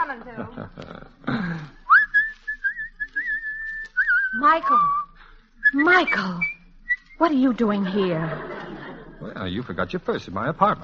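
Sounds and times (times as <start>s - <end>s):
laughter: 0.0s - 2.0s, 7.8s - 9.6s
speech: 0.1s - 1.8s, 4.4s - 5.0s, 5.7s - 6.5s, 7.2s - 8.6s, 9.4s - 10.8s
person whistling a tune: 1.9s - 7.2s.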